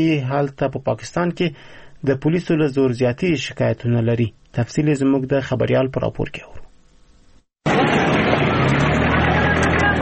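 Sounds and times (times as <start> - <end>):
speech: 0.0 - 6.6
heavy traffic of trucks and Datsun pickups on the Spin Boldak–Chaman road: 7.6 - 9.9.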